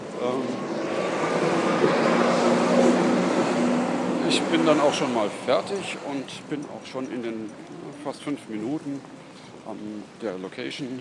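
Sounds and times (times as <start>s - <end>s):
tram passing: 0.0s - 6.5s
speech: 4.3s - 10.9s.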